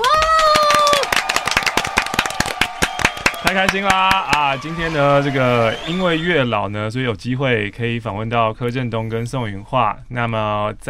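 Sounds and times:
small group clapping: 0.0 - 6.3
high drawn-out cheering whoop: 0.0 - 6.4
speech: 3.5 - 10.8.

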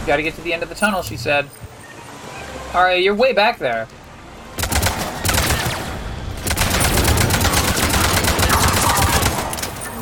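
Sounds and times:
speech: 0.1 - 1.7, 2.8 - 4.0
video game automatic gunfire: 4.6 - 9.9.

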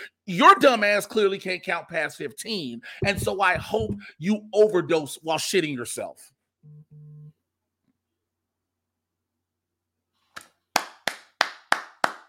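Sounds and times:
speech: 0.3 - 6.8
applause sound effect: 10.4 - 12.2.

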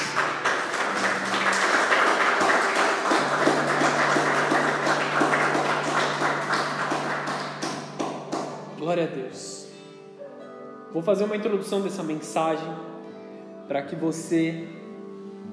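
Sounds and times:
audience applauding: 0.0 - 8.6
speech: 11.0 - 12.9, 13.7 - 14.8.

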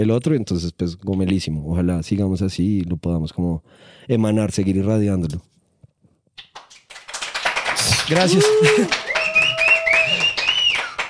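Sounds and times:
speech: 0.0 - 5.5, 8.1 - 9.0
small group clapping: 6.4 - 11.0.

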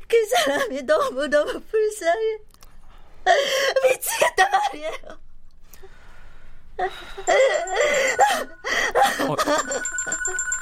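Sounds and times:
speech: 0.1 - 2.5, 3.2 - 5.2, 6.8 - 10.6
telephone ringing: 7.3 - 10.6.

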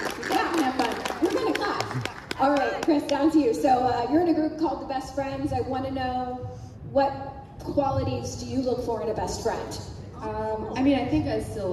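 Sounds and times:
audience clapping: 0.0 - 3.2
speech: 2.4 - 11.7.

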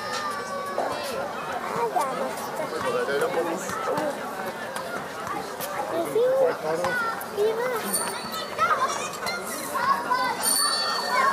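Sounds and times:
children shouting: 0.0 - 2.0, 6.0 - 11.3
murmur of many voices on a summer evening in Berlin: 0.0 - 11.3.

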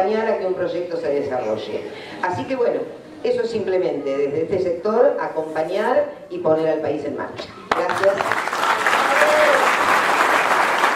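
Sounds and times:
speech: 0.0 - 8.6
audience applause: 7.7 - 10.9.

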